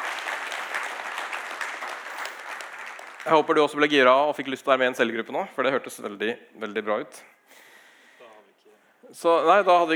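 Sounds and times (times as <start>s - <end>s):
audience applause: 0.0s - 3.6s
speech: 3.2s - 7.6s, 9.1s - 9.9s.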